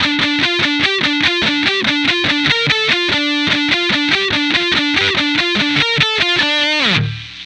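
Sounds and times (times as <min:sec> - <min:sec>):
guitar: 0:00.0 - 0:07.4.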